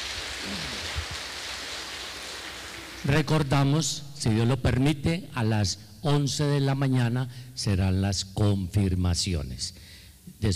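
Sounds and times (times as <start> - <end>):
audience applause: 0.0 - 3.0
speech: 3.1 - 10.5.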